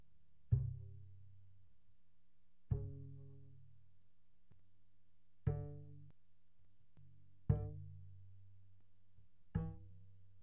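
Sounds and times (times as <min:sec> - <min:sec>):
double bass pizzicato mezzo forte on the E string C3 to E3: 0:00.5 - 0:01.6, 0:02.6 - 0:04.0, 0:05.4 - 0:06.1, 0:07.0 - 0:08.8, 0:09.4 - 0:10.4.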